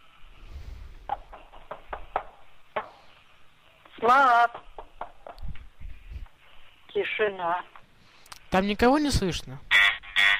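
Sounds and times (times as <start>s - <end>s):
knocking on a door: 1.1s - 3.0s, 4.5s - 5.6s
speech: 4.0s - 4.7s, 7.0s - 7.8s, 8.5s - 9.7s.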